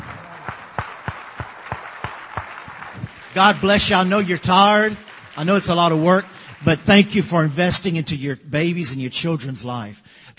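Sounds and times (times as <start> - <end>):
audience applauding: 0.0 - 8.0
speech: 3.4 - 10.3.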